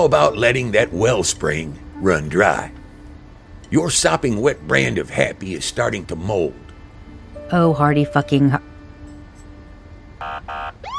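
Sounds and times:
speech: 0:00.0 - 0:02.8, 0:03.7 - 0:06.6, 0:07.5 - 0:08.7
police siren: 0:10.2 - 0:10.9.

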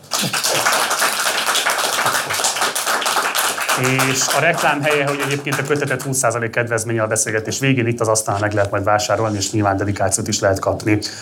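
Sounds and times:
audience applause: 0:00.0 - 0:06.3
speech: 0:03.8 - 0:11.1.

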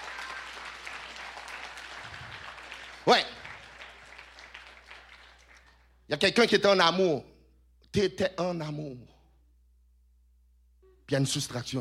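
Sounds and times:
audience applause: 0:00.0 - 0:05.8
speech: 0:03.1 - 0:03.3, 0:06.1 - 0:07.3, 0:07.9 - 0:09.1, 0:11.1 - 0:11.7.

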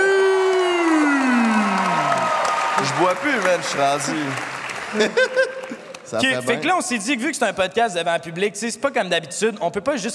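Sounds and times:
audience cheering: 0:00.0 - 0:05.4
audience applause: 0:00.0 - 0:06.5
speech: 0:02.9 - 0:10.1
laughter: 0:04.9 - 0:06.0.

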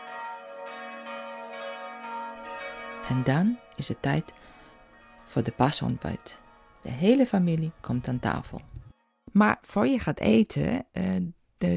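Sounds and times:
church bells ringing: 0:00.0 - 0:09.1
speech: 0:03.1 - 0:04.6, 0:05.3 - 0:11.7.

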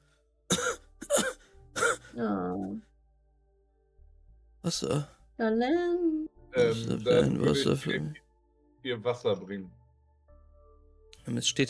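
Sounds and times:
dry cough: 0:00.5 - 0:02.1
speech: 0:02.2 - 0:02.9, 0:04.6 - 0:08.2, 0:08.8 - 0:09.8, 0:11.2 - 0:11.6.

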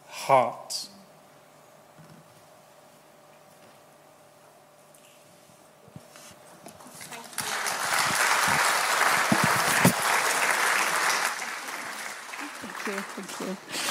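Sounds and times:
church audience applauding: 0:07.1 - 0:13.8.

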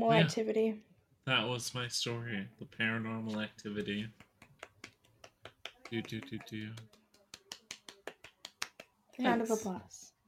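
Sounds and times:
speech: 0:00.0 - 0:04.3, 0:05.9 - 0:07.0, 0:09.2 - 0:10.1
finger snapping: 0:03.3 - 0:08.9.

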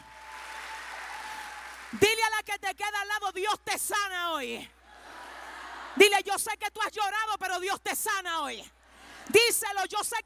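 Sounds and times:
audience applause: 0:00.0 - 0:02.0
speech: 0:01.9 - 0:04.8, 0:06.0 - 0:10.2.

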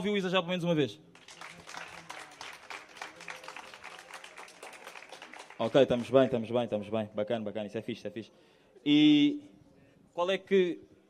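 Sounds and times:
speech: 0:00.0 - 0:01.5, 0:05.6 - 0:09.5, 0:10.2 - 0:11.0
audience applauding: 0:01.2 - 0:06.4.

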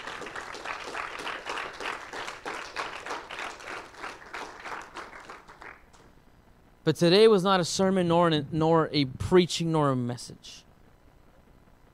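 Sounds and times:
audience clapping: 0:00.0 - 0:06.1
speech: 0:06.8 - 0:10.6.

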